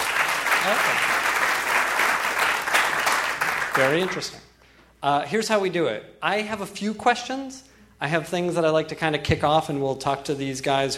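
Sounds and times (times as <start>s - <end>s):
audience clapping: 0.0s - 4.4s
speech: 0.6s - 1.2s, 3.8s - 4.4s, 5.0s - 10.9s.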